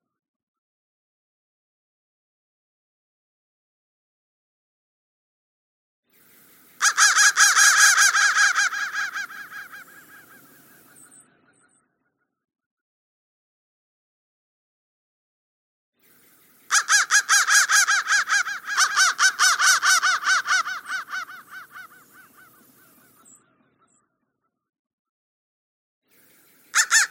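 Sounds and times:
crow cawing: 0:06.8 - 0:11.2, 0:16.7 - 0:23.4, 0:26.7 - 0:27.1.

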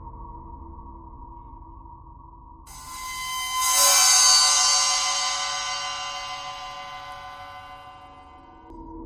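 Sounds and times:
bowed cymbal: 0:02.7 - 0:08.7.

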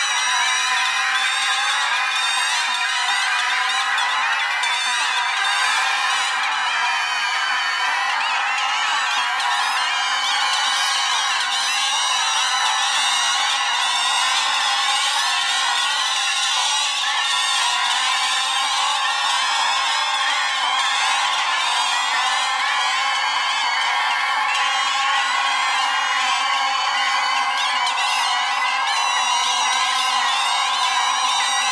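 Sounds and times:
bagpipe: 0:00.0 - 0:31.7.

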